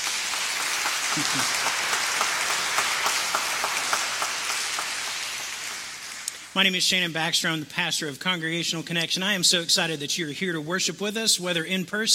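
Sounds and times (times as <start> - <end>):
audience applauding: 0.0 - 6.5
speech: 1.2 - 2.2, 6.6 - 12.1.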